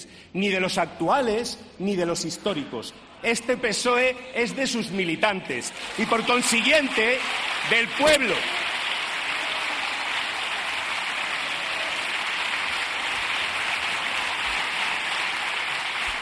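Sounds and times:
speech: 0.3 - 8.7
standing ovation applause in parliament: 5.6 - 16.2.

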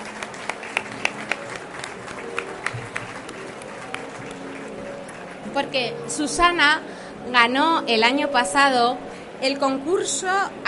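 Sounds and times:
audience applause: 0.0 - 5.6
speech: 5.6 - 10.6.

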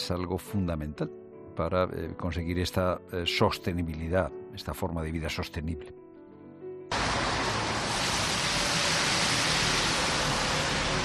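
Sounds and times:
speech: 0.1 - 6.0
traffic on a large avenue in Madrid: 6.9 - 11.0.

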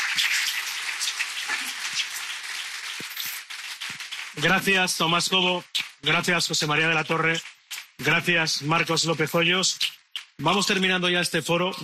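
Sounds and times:
crowd applauding: 0.0 - 5.3
speech: 4.4 - 11.8.

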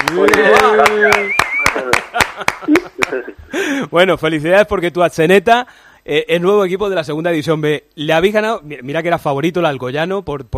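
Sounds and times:
small group applauding: 0.0 - 3.2
speech: 3.9 - 10.5.

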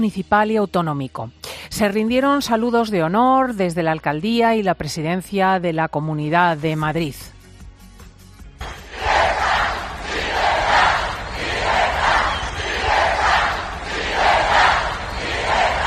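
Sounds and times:
speech: 0.0 - 7.4
crowd shouting cries of freedom: 8.6 - 15.8.

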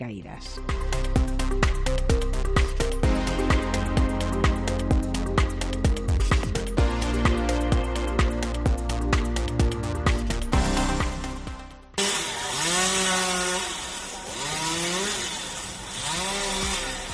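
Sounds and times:
music: 0.0 - 15.3, 16.4 - 17.1
chainsaw cutting through wood: 12.0 - 17.1.

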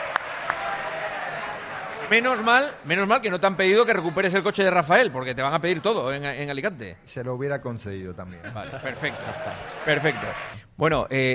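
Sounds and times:
audience applause: 0.0 - 2.8, 8.8 - 10.6
speech: 2.1 - 11.3
laughter: 8.3 - 10.6.

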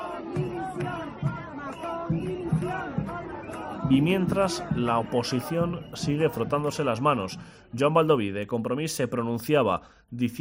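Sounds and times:
crowd of protesters shouting and chanting: 0.0 - 8.2
speech: 3.9 - 10.4.

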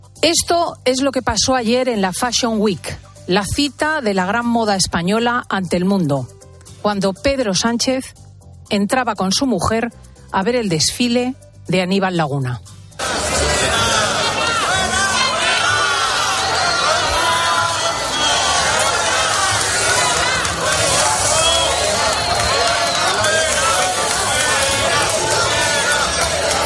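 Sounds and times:
speech: 0.2 - 12.7
crowd booing: 13.0 - 26.6.

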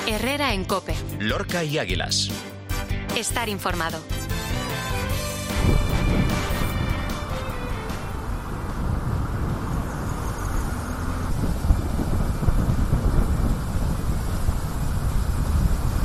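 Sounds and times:
speech: 0.1 - 2.5, 3.2 - 4.5
windstorm with thunder from storm Herminia in Lorca: 5.4 - 16.0.

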